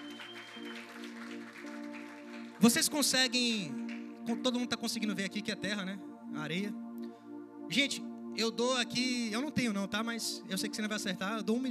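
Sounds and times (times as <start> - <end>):
audience applause: 0.0 - 2.8
speech: 2.6 - 6.8, 7.7 - 11.6.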